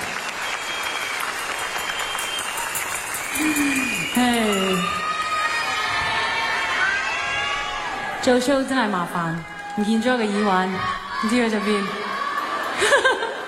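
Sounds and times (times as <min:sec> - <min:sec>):
audience applause for two Canadian dancers at a live show: 0:00.0 - 0:13.4
cheering: 0:00.0 - 0:13.4
speech: 0:08.2 - 0:12.0
laughter: 0:12.1 - 0:13.4.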